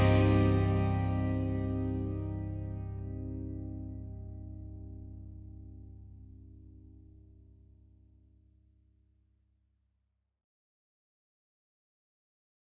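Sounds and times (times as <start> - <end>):
minor chord progression: 0.0 - 7.6.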